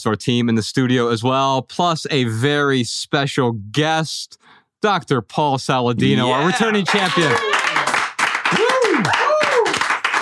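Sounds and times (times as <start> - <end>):
speech: 0.0 - 7.6
people whooping: 6.0 - 10.0
people clapping in a studio: 6.0 - 10.2.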